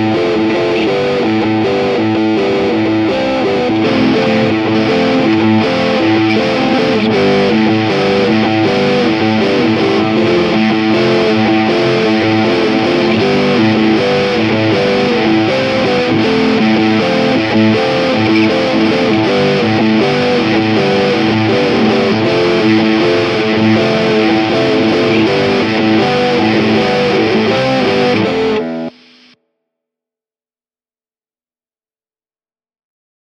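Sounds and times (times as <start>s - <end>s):
epic neoclassical metal music: 0.0s - 28.9s.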